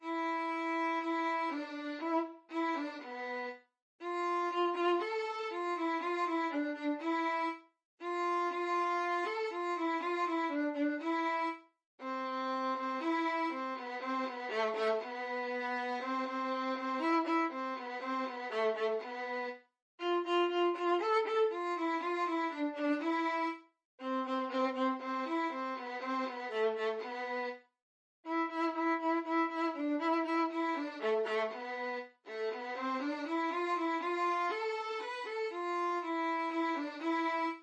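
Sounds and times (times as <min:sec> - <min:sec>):
violin playing a folk tune: 0:00.0 - 0:27.6, 0:28.2 - 0:37.6.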